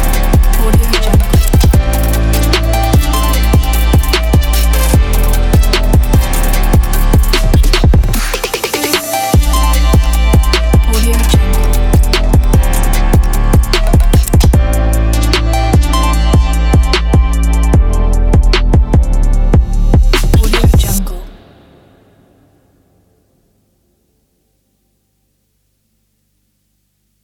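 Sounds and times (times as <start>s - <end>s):
fashion chill R&B music: 0.0s - 21.5s.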